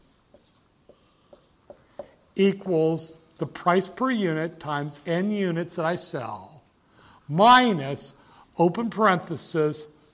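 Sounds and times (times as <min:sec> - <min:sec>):
pen writing out a profit equation by hand: 0:00.0 - 0:02.2
soft hiss: 0:00.0 - 0:10.1
speech: 0:02.4 - 0:06.5, 0:07.3 - 0:09.9.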